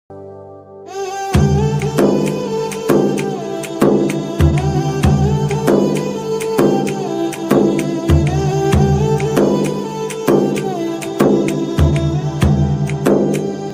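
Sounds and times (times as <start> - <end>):
background music song: 0.1 - 13.7.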